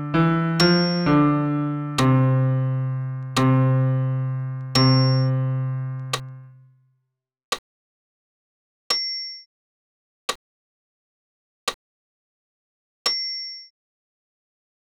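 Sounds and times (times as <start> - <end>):
solo piano in the low register: 0.0 - 6.6.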